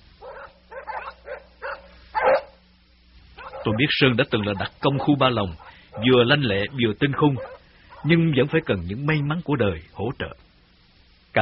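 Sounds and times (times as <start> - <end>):
low steady hum: 0.0 - 11.4
tracking dogs barking during a manhunt: 0.2 - 2.6, 3.4 - 6.2, 7.2 - 8.2
speech: 3.6 - 10.5.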